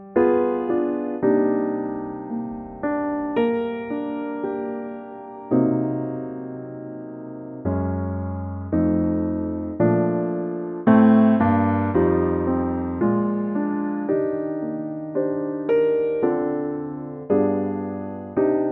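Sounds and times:
piano playing in B flat: 0:00.0 - 0:18.7.

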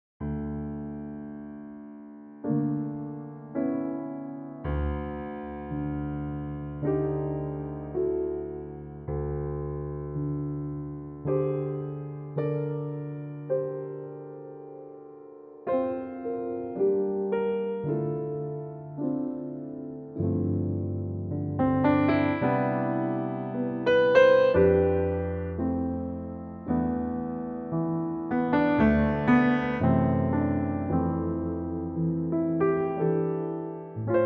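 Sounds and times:
piano note C: 0:00.2 - 0:34.2.

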